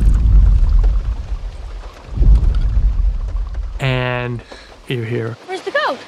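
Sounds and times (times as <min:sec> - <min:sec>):
deep booming dinosaur footstep thuds: 0:00.0 - 0:04.9
light rain: 0:00.0 - 0:06.0
speech: 0:04.4 - 0:06.0.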